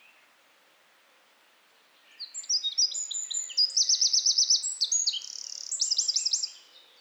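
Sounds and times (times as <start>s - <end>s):
Eurasian wren song: 2.3s - 6.6s.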